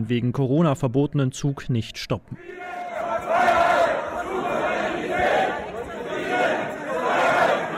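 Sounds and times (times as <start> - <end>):
speech: 0.0 - 2.8
protest crowd chanting slogans: 2.4 - 7.7.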